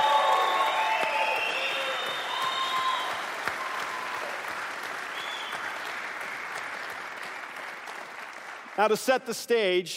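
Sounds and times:
audience applause: 0.0 - 9.3
speech: 8.8 - 9.9.

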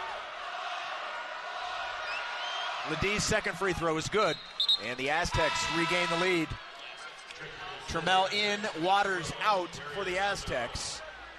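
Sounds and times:
loud basketball arena crowd: 0.0 - 11.3
speech: 2.9 - 6.7, 7.4 - 11.1.

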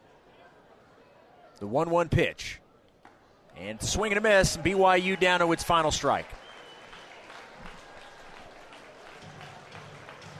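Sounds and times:
speech: 1.6 - 2.6, 3.6 - 6.4
baseball crowd clapping at Russo Park: 4.2 - 10.3.

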